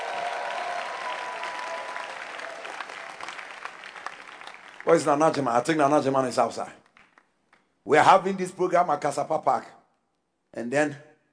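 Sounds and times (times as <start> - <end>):
audience clapping: 0.0 - 7.8
speech: 4.9 - 6.8, 7.9 - 9.8, 10.5 - 11.1.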